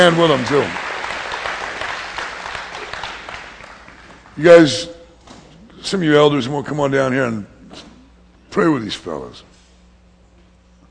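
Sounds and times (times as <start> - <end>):
speech: 0.0 - 0.8, 4.4 - 5.0, 5.8 - 7.9, 8.5 - 9.5
audience applauding: 0.0 - 4.4.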